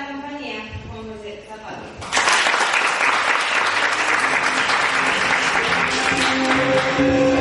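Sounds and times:
loud audience applause: 0:02.0 - 0:07.3.

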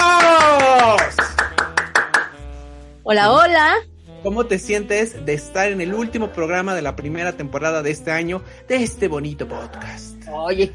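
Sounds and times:
applause: 0:00.0 - 0:02.4
speech: 0:03.1 - 0:10.7.

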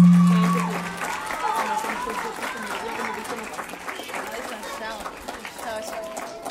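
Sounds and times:
brief low tone: 0:00.0 - 0:01.0
crowd applause: 0:00.0 - 0:06.4.

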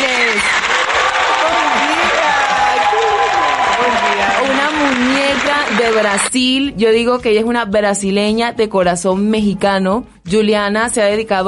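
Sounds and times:
audience applause: 0:00.0 - 0:06.3
speech: 0:05.9 - 0:11.4.

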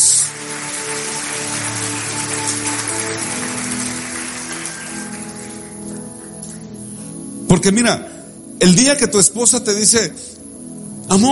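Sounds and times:
loud audience applause: 0:00.0 - 0:06.7
speech: 0:07.5 - 0:10.3.

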